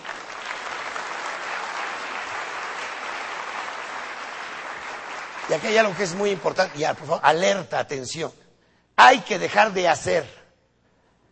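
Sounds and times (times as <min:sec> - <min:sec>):
audience applause: 0:00.0 - 0:07.2
speech: 0:05.5 - 0:08.4, 0:09.0 - 0:10.4.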